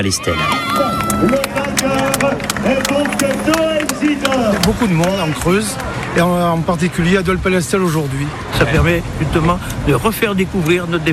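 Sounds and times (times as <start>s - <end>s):
crowd shouting: 0.0s - 6.2s
speech: 0.0s - 11.1s.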